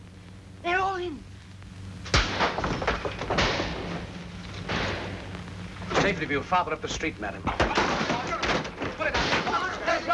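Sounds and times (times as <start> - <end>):
speech: 1.0 - 1.3, 6.1 - 8.3
locked doors being smashed in: 2.1 - 5.2, 7.5 - 10.1.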